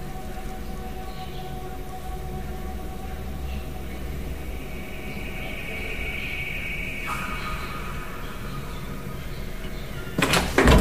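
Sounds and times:
low steady hum: 0.0 - 10.7
office door creaking open: 10.2 - 10.7.

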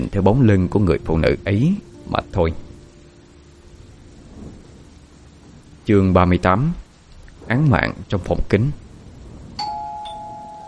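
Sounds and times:
speech: 0.0 - 2.6, 5.9 - 6.8, 7.5 - 8.8
apartment door electronic doorbell chime: 9.6 - 10.6.

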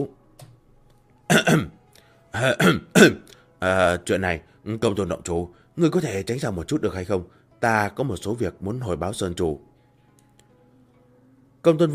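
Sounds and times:
throat clearing: 1.3 - 1.8, 2.4 - 3.3
speech: 2.4 - 9.7, 11.6 - 11.9.

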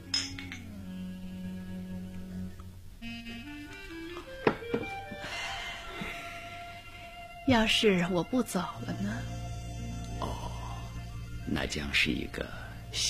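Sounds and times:
glasses clinking in a toast: 0.0 - 0.7
soft melodic music: 0.0 - 13.0
faint knocks: 4.2 - 5.0
speech: 4.7 - 5.0, 7.5 - 9.3, 11.6 - 13.0.

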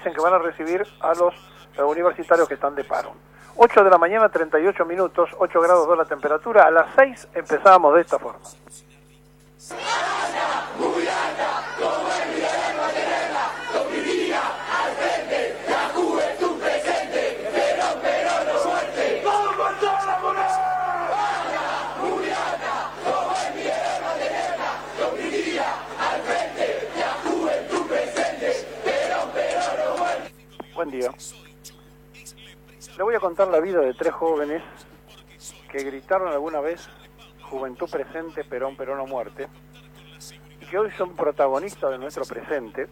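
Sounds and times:
speech: 0.0 - 8.9, 9.6 - 10.0, 30.8 - 31.4, 33.0 - 42.8
crowd chanting political slogans: 9.7 - 30.3.

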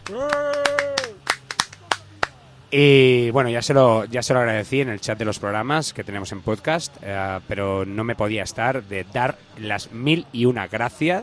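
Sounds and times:
handclaps: 0.0 - 2.4
speech: 0.1 - 0.5, 2.7 - 11.2.

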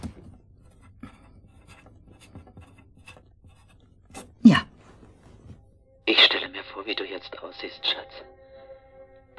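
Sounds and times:
pen scratching while jotting down an account number: 0.1 - 4.8
speech: 6.8 - 8.4.

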